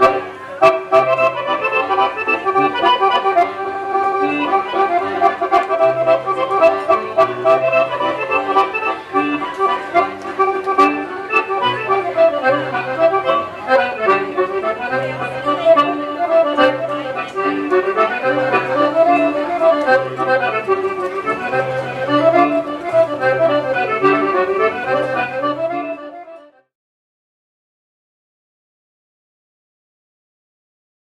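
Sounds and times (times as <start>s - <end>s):
accordionist playing a German medley: 0.0s - 26.7s.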